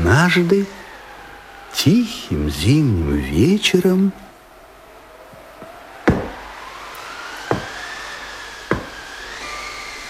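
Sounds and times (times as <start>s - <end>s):
speech: 0.0s - 0.8s, 1.7s - 4.2s
knocking on a door: 6.1s - 6.4s, 7.5s - 7.8s, 8.7s - 9.0s.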